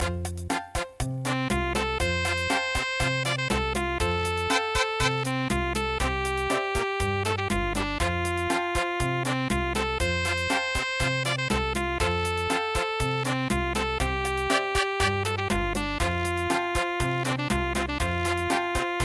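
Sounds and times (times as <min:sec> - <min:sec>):
cha-cha music: 0:00.0 - 0:19.0.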